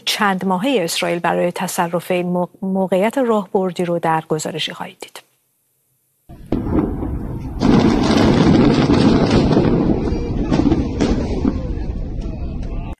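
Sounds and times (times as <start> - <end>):
speech: 0.2 - 5.2
huge demolition blast: 6.3 - 12.9.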